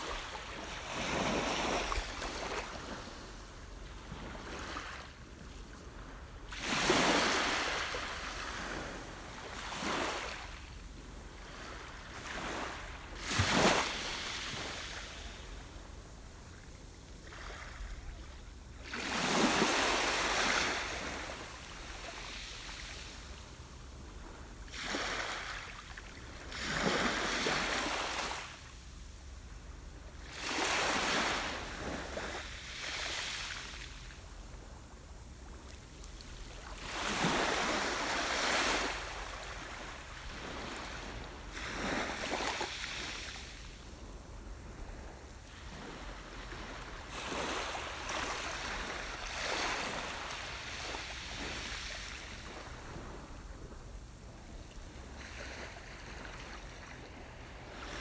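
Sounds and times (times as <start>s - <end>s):
calm ocean water: 0.0s - 57.9s.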